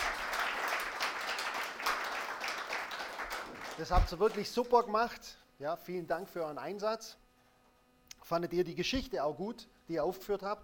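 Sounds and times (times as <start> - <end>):
children applauding: 0.0 - 4.5
speech: 3.8 - 7.2, 8.2 - 10.6.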